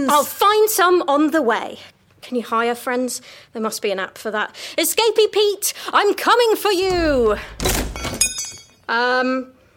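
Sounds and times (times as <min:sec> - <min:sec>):
speech: 0:00.1 - 0:08.3, 0:08.9 - 0:09.5
door handle breaking off: 0:06.9 - 0:08.6.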